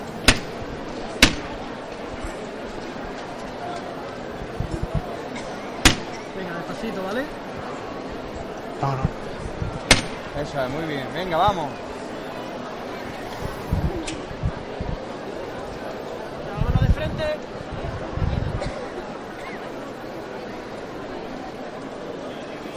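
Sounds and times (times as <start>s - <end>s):
crowd murmur: 0.0s - 22.7s
sharp loud knocks of a procession float being lifted: 5.8s - 6.2s.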